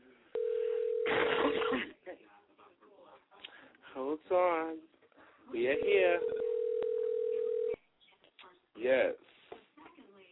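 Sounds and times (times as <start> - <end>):
telephone dial tone: 0.4 - 1.1, 5.8 - 7.8
speech: 4.3 - 4.9, 5.5 - 6.4, 8.8 - 9.3.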